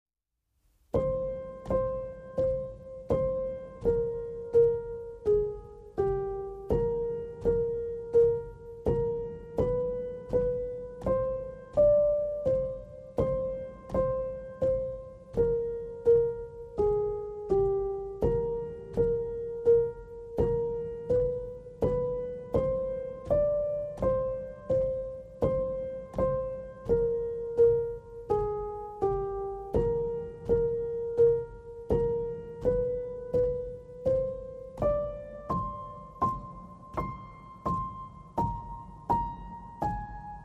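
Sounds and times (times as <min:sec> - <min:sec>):
pulsing piano: 0:00.9 - 0:40.4.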